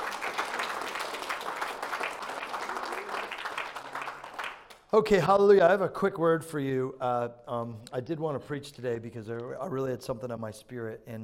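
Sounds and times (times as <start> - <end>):
crowd applause: 0.0 - 4.8
speech: 4.9 - 11.2.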